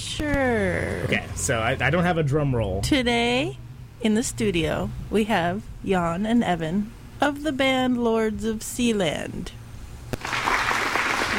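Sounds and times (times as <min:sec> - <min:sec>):
speech: 0:00.2 - 0:09.6
polite applause: 0:10.2 - 0:11.3.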